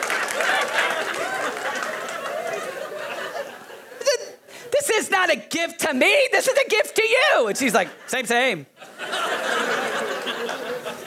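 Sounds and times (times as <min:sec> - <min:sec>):
audience clapping: 0:00.0 - 0:03.0
laughter: 0:00.0 - 0:04.2, 0:08.8 - 0:11.0
speech: 0:05.2 - 0:09.2.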